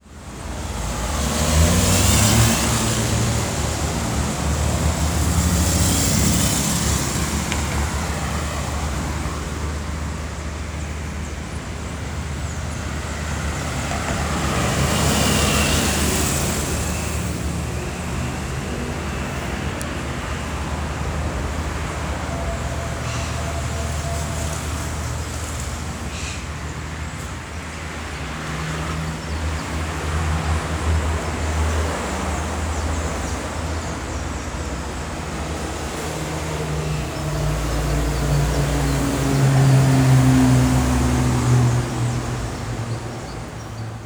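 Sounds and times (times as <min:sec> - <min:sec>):
city ambience: 0:00.0 - 0:44.0.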